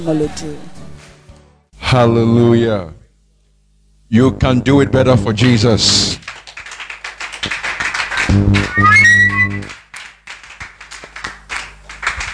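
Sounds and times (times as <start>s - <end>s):
speech: 0.0s - 0.8s, 1.9s - 3.0s, 4.1s - 6.2s, 8.3s - 9.1s
audience clapping: 5.4s - 12.3s.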